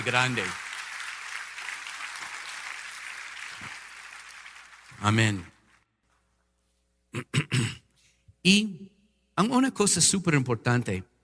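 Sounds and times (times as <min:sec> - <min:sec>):
speech: 0:00.0 - 0:00.6, 0:05.0 - 0:05.5, 0:07.1 - 0:07.8, 0:08.4 - 0:11.1
audience applause: 0:00.0 - 0:05.8.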